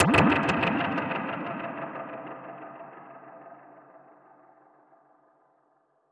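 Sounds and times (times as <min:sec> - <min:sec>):
dub percussion hit: 0:00.0 - 0:03.6.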